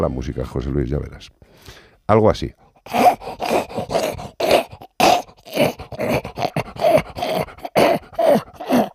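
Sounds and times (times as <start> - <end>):
speech: 0.0 - 3.3
French bulldog's obstructed noisy breathing: 2.8 - 8.9.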